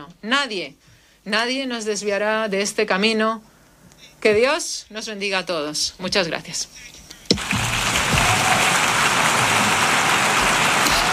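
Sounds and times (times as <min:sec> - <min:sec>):
speech: 0:00.0 - 0:03.5, 0:04.2 - 0:07.0
large crowd applauding: 0:07.4 - 0:11.1.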